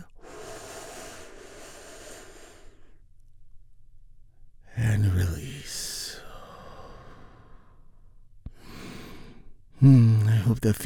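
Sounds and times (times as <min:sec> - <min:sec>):
people taking a deep breath together during a guided relaxation exercise: 0:00.2 - 0:03.0, 0:06.3 - 0:07.8, 0:08.5 - 0:09.5
speech: 0:09.8 - 0:10.8.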